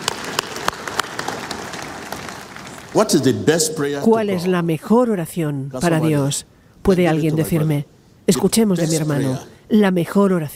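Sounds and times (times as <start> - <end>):
audience applause: 0.0 - 3.4
speech: 2.9 - 10.5.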